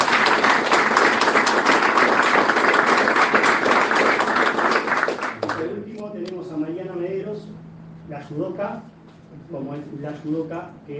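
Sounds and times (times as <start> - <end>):
audience applause: 0.0 - 5.7
speech: 9.5 - 10.9.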